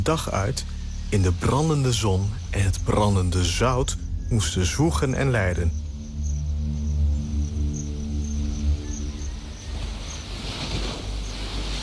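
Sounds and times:
speech: 0.0s - 5.8s
low droning hum: 0.0s - 11.8s
steady wind on the shore of a flat island: 0.0s - 11.8s
rushing sea waves on the shore of a flat island: 9.5s - 11.8s.

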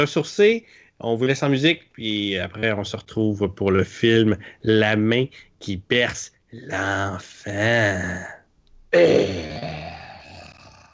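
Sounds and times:
speech: 0.0s - 9.8s
person burping: 9.0s - 10.8s.

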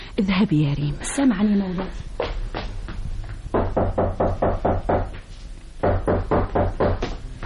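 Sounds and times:
speech: 0.2s - 2.2s
knocking on a door: 3.5s - 5.2s, 5.8s - 7.2s.

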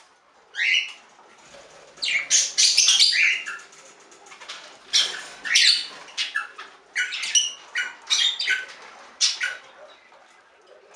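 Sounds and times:
budgerigar chirps: 2.0s - 3.6s, 4.9s - 9.6s.

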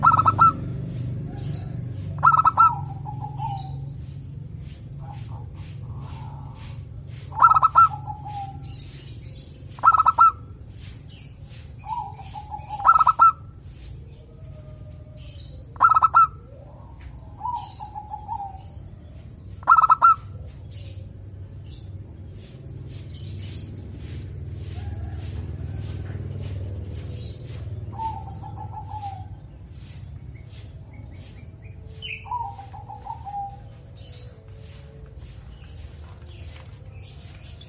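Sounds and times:
zebra dove cooing: 0.0s - 8.9s, 9.7s - 10.6s, 11.5s - 19.0s, 19.6s - 21.1s, 27.4s - 34.8s
other birds whistling softly: 1.4s - 25.2s, 27.0s - 37.6s.

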